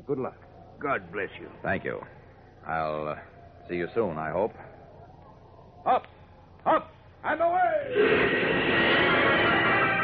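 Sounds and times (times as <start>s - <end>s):
speech: 0.1s - 4.7s, 5.8s - 8.6s
great rush of wind: 7.9s - 9.9s.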